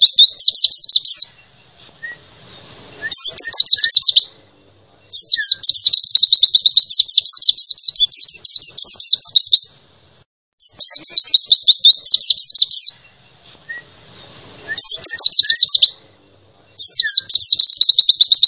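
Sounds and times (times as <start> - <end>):
white-eye chirping song: 0.0 - 18.4.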